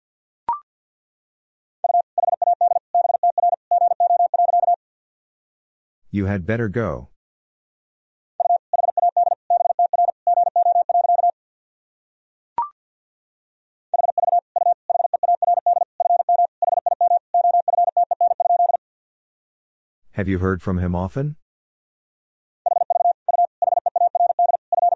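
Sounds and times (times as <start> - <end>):
Morse code tones at 50 wpm: 1.8 - 4.8, 8.4 - 11.4, 14.0 - 18.8, 22.6 - 24.9
speech: 6.1 - 7.1, 20.2 - 21.4.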